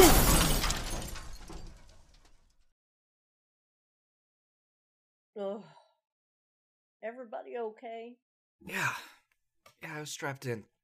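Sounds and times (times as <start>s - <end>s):
car crash: 0.0s - 2.7s
speech: 7.0s - 9.1s, 9.8s - 10.8s.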